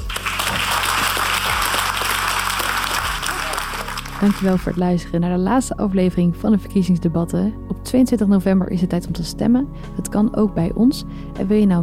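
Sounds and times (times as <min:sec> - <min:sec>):
warm audience applause: 0:00.0 - 0:04.8
speech: 0:04.2 - 0:11.8.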